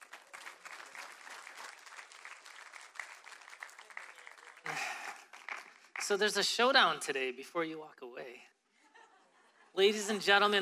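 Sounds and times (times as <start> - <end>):
church service audience applauding to welcome the pastor: 0.0 - 6.3
laughter: 4.6 - 5.5, 8.7 - 9.8
speech: 6.1 - 8.4, 9.8 - 10.6.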